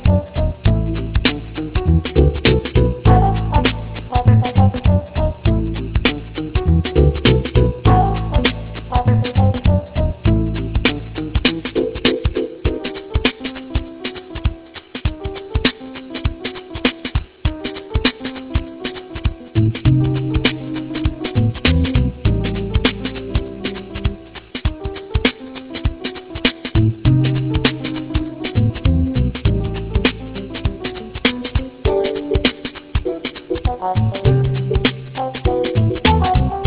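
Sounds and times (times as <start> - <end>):
music in phrygian mode: 0.0 - 36.6.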